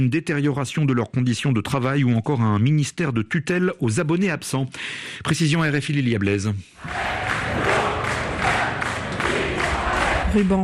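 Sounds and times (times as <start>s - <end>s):
speech: 0.0s - 7.7s, 10.3s - 10.6s
crowd of protesting lawyers chanting slogans: 6.8s - 10.6s.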